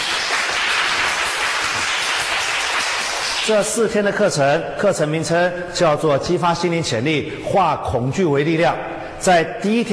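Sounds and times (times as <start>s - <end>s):
crowd clapping: 0.0s - 3.8s
speech: 3.5s - 9.9s.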